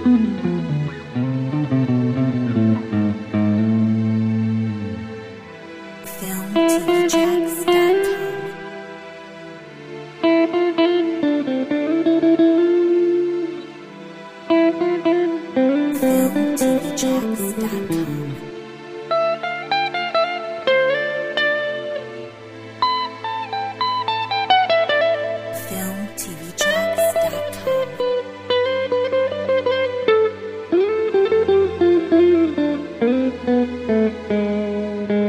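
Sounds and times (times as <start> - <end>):
guitar: 0.0 - 35.2.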